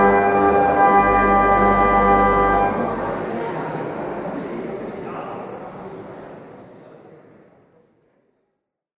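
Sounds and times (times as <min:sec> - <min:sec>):
instrumental song: 0:00.0 - 0:03.1.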